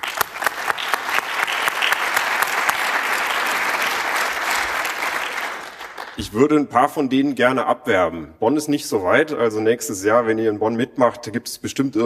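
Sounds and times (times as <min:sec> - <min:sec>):
audience applause: 0:00.0 - 0:06.2
speech: 0:06.2 - 0:12.0.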